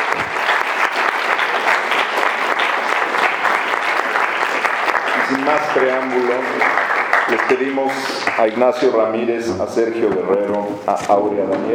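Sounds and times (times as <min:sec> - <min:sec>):
audience applause for panel speakers at close of panel session: 0:00.0 - 0:08.9
speech: 0:05.5 - 0:11.7.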